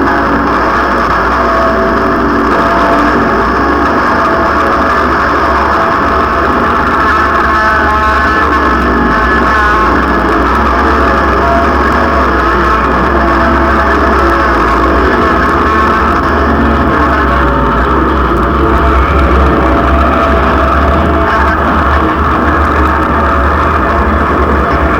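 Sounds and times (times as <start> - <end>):
guitar drag: 0.0 - 24.9.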